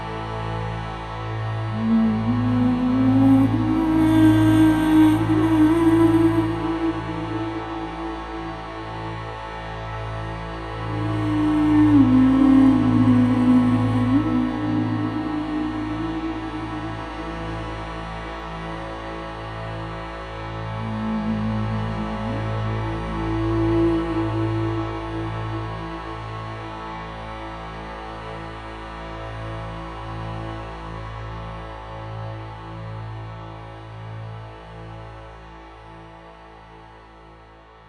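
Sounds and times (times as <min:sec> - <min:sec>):
new age cinematic vocals: 0:01.7 - 0:09.3, 0:10.8 - 0:19.2, 0:20.8 - 0:27.7.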